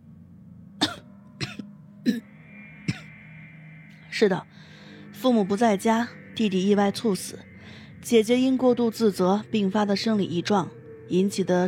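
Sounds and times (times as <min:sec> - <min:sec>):
light coughing and throat clearing: 0:00.8 - 0:02.2, 0:02.9 - 0:03.1
speech: 0:02.0 - 0:02.3, 0:04.2 - 0:04.6, 0:05.2 - 0:11.6.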